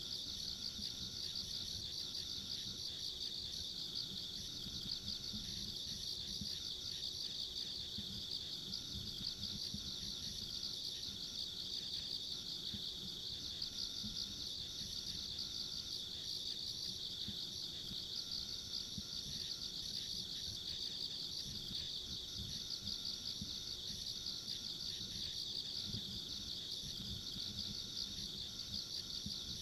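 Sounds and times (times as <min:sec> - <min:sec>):
insect chorus: 0:00.0 - 0:29.6.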